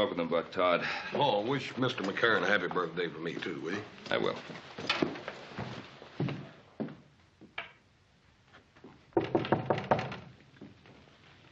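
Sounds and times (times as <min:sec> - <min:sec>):
speech: 0:00.0 - 0:05.4
knocking on a wooden door: 0:09.2 - 0:10.3.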